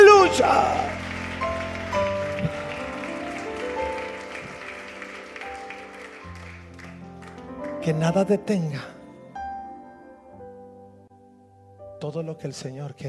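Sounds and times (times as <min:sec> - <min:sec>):
audience applause: 0:00.0 - 0:07.9
speech: 0:00.4 - 0:01.1, 0:07.9 - 0:09.0, 0:12.0 - 0:13.0.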